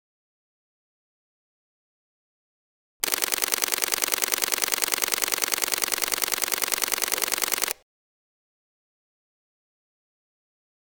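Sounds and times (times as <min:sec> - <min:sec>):
Sony a7iv rapid mechanical shutter clicks: 0:03.0 - 0:07.8.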